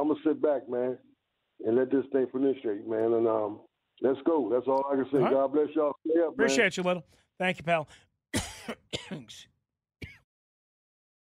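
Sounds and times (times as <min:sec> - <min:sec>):
speech: 0:00.0 - 0:09.5
man clearing throat after choking on a drink: 0:08.4 - 0:09.4, 0:10.0 - 0:10.2.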